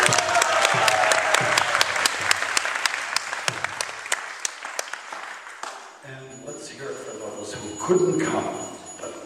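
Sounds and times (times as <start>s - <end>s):
audience applause for lecture facilitators: 0.0s - 5.9s
speech: 7.9s - 8.6s.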